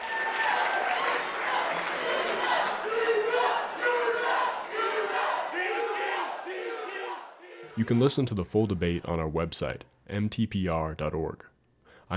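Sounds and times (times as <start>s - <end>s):
crowd cheering and chanting: 0.0s - 9.5s
speech: 7.8s - 11.5s.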